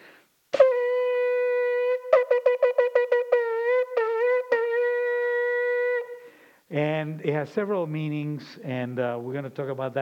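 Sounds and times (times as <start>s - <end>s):
shofar ram's horn blowing: 0.5s - 6.5s
speech: 6.7s - 10.0s.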